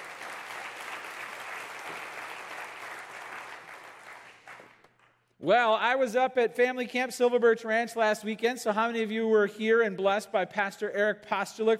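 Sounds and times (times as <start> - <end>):
audience applause: 0.0 - 4.9
speech: 5.4 - 11.7.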